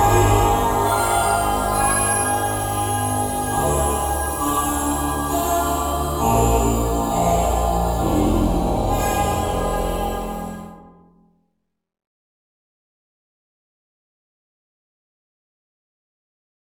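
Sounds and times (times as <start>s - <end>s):
choir singing: 0.0s - 10.9s.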